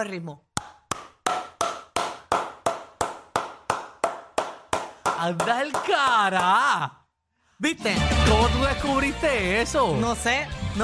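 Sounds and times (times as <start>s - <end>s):
speech: 0.0s - 0.5s, 5.2s - 7.0s, 7.6s - 10.8s
loud hand clapping: 0.6s - 6.8s.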